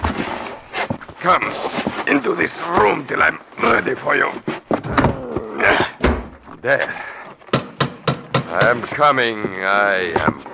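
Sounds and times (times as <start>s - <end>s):
speech: 1.2s - 5.9s, 6.6s - 7.1s, 8.5s - 10.5s
dull heavy knocks on a door: 7.5s - 8.9s.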